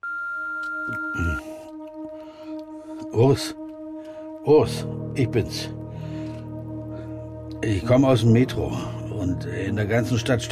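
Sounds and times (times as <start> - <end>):
answering machine beep: 0.0 - 1.4
speech: 3.2 - 3.6, 4.4 - 5.8, 7.6 - 10.4.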